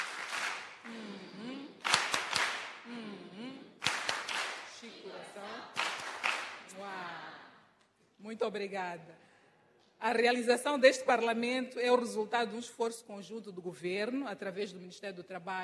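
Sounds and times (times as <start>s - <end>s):
children clapping: 0.0s - 1.0s, 1.8s - 2.9s, 3.8s - 6.8s
speech: 8.4s - 9.3s, 10.0s - 15.6s.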